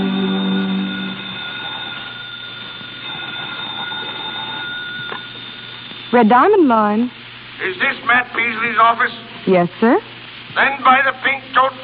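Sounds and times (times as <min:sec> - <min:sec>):
faint tones: 0:00.0 - 0:06.5
telephone ringing: 0:00.0 - 0:06.5
low hum: 0:00.0 - 0:07.7
speech: 0:06.1 - 0:11.8.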